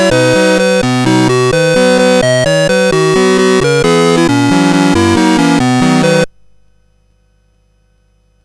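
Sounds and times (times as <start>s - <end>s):
CSG8580R5 sound chip music: 0.0s - 6.3s.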